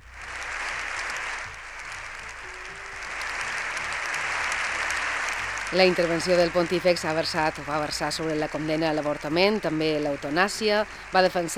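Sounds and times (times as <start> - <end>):
standing ovation in parliament: 0.0 - 11.5
speech: 5.7 - 11.5.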